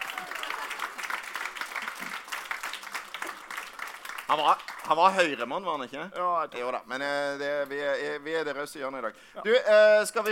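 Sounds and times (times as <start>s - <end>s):
audience applause: 0.0s - 5.2s
speech: 4.3s - 10.3s.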